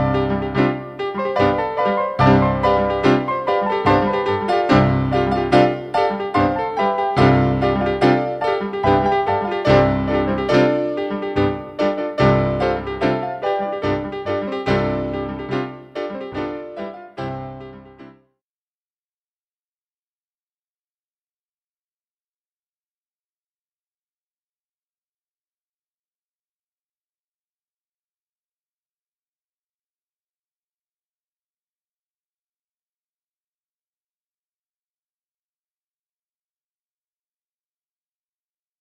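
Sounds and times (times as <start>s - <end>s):
bolero on two pianos: 0.0s - 18.2s.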